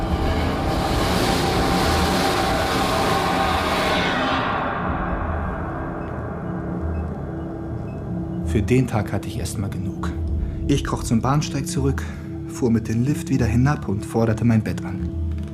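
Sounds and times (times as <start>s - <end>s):
train rushing past: 0.0s - 8.3s
speech: 8.6s - 15.2s.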